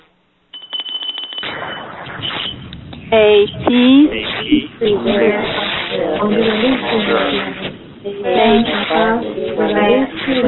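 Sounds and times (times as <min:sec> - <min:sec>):
ceremonial bell ringing: 0:00.6 - 0:02.6
speech: 0:03.1 - 0:10.4.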